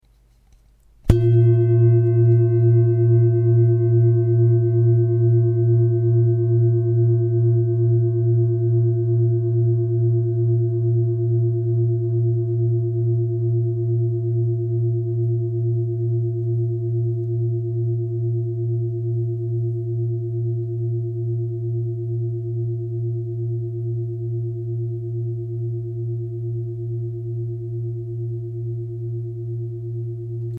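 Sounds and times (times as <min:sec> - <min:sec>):
singing bowl: 0:01.1 - 0:30.5.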